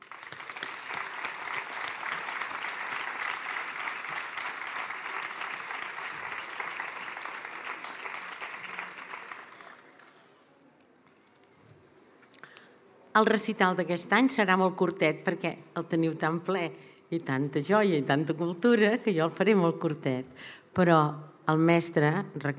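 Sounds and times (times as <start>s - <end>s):
audience applause: 0.0s - 10.4s
speech: 13.2s - 22.5s.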